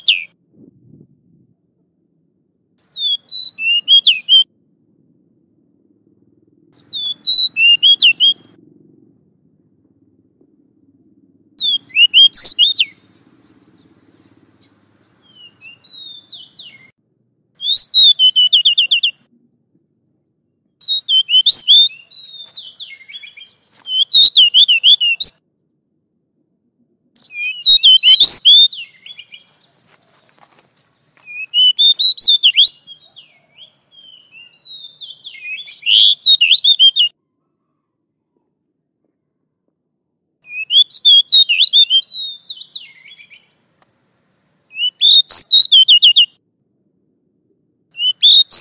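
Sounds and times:
oriental magpie-robin singing: 0.0 - 0.4, 2.9 - 4.5, 6.8 - 8.6, 11.6 - 17.0, 17.6 - 19.3, 20.8 - 25.4, 27.2 - 30.4, 31.2 - 37.2, 40.4 - 43.6, 44.6 - 46.4, 47.9 - 48.5.

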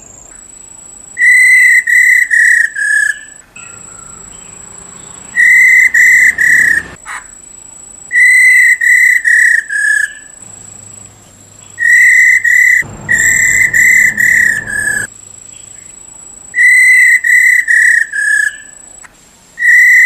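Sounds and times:
black-throated laughingthrush whistled notes: 1.2 - 7.0, 8.1 - 10.4, 11.6 - 15.1, 16.6 - 18.8, 19.6 - 20.0.

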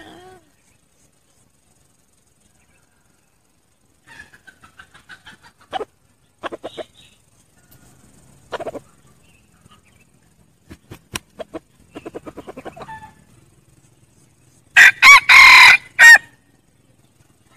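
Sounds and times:
red junglefowl crowing: 14.8 - 16.4.

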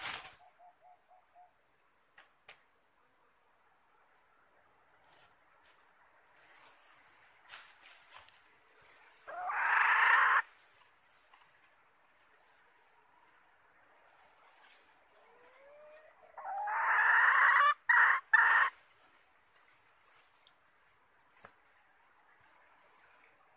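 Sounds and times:
red junglefowl hen calling: 9.2 - 10.5, 15.1 - 18.8.

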